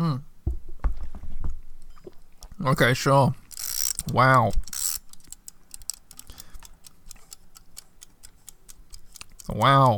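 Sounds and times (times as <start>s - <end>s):
speech: 2.6s - 3.4s, 4.1s - 4.6s, 9.5s - 9.9s
chat timer ticking: 3.6s - 9.9s.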